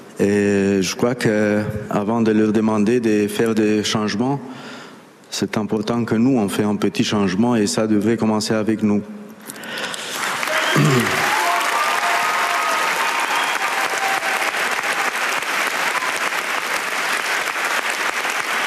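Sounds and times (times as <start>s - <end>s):
speech: 0.2s - 4.7s, 5.3s - 9.9s, 10.8s - 11.2s
large festival crowd applause: 9.8s - 18.6s
faint voices and cheers: 10.4s - 15.2s.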